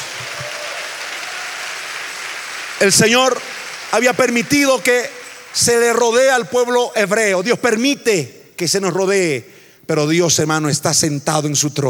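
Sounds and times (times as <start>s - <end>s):
audience applause: 0.0s - 6.5s
speech: 2.8s - 11.8s.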